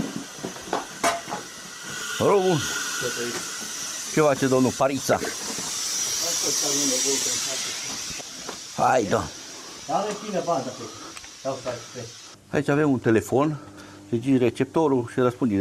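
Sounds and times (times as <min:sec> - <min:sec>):
air hissing through mine ventilation door: 0:00.0 - 0:12.4
speech: 0:02.2 - 0:03.6, 0:04.2 - 0:05.5, 0:06.4 - 0:07.5, 0:08.8 - 0:15.6.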